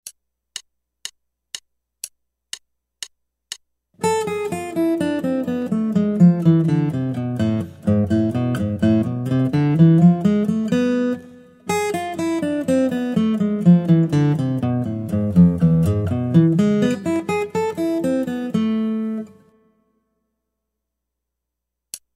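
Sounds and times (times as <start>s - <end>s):
guitar: 4.0s - 20.0s.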